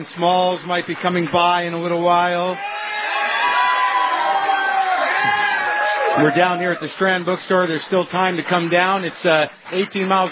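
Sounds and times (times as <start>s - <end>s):
speech: 0.0s - 2.8s, 6.2s - 10.3s
audience applause: 0.4s - 10.3s
audience cheering: 2.4s - 7.7s.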